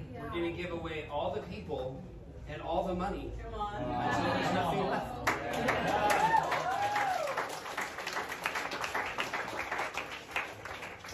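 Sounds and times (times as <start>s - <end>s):
speech: 0.4s - 6.5s
audience applause: 5.2s - 11.1s.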